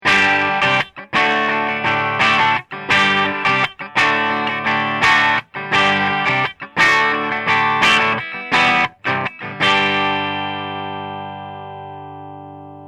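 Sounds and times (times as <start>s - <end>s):
6L6 clean amplifier tone: 0.0s - 12.8s.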